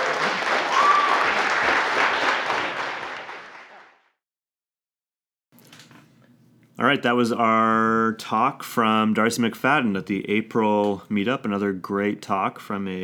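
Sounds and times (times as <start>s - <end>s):
audience applause: 0.0s - 4.0s
speech: 6.8s - 13.0s.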